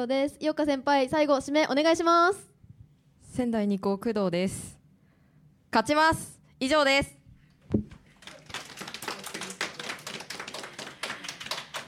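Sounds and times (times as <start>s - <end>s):
speech: 0.0s - 2.5s, 3.4s - 4.8s, 5.7s - 7.8s
applause: 8.0s - 11.8s.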